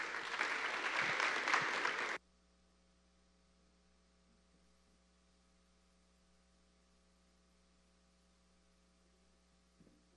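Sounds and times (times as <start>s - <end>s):
audience applause: 0.0s - 2.2s.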